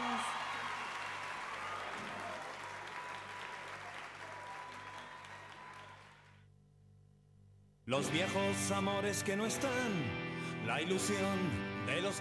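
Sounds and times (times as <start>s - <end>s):
audience applause: 0.0s - 6.4s
speech: 7.9s - 12.1s.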